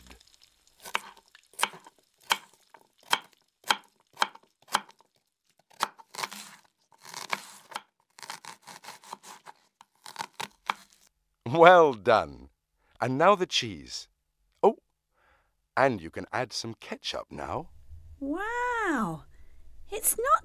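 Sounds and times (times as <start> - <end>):
knife chopping tomato, lettuce and onion for a hamburger: 0.8 - 5.0, 5.7 - 11.0
speech: 11.5 - 12.4, 13.0 - 14.8, 15.8 - 18.4, 19.9 - 20.4.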